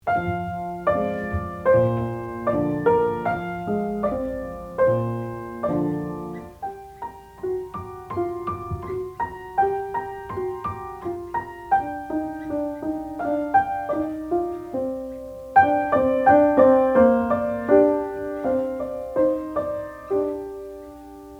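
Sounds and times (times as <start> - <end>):
piano: 0.0 - 21.3.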